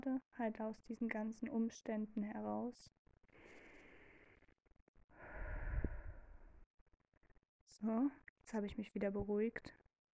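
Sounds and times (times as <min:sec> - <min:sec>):
speech: 0:00.0 - 0:03.7, 0:07.7 - 0:09.9
person deep breathing in and out to calm down: 0:03.3 - 0:06.6.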